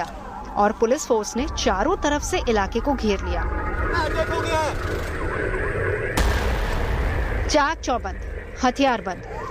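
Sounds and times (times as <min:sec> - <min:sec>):
speech: 0:00.0 - 0:05.7, 0:07.5 - 0:09.4
explosion blast during security drill: 0:02.0 - 0:08.8.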